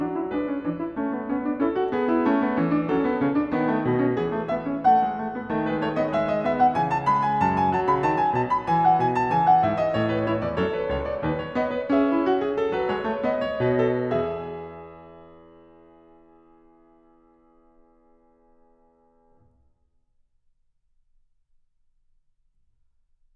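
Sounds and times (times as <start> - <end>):
keyboard fugue in E major: 0.0 - 17.2.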